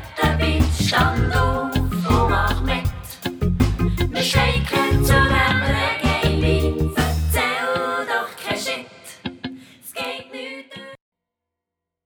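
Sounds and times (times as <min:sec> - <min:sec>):
short reggae music: 0:00.0 - 0:08.2.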